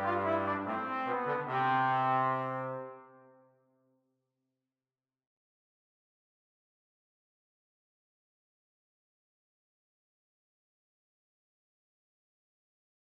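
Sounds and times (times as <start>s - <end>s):
trombone duet: 0.0s - 3.2s.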